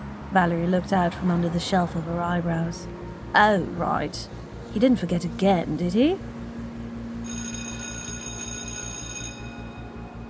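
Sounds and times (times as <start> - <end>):
speech: 0.3 - 6.3
school bell ringing: 7.2 - 10.2.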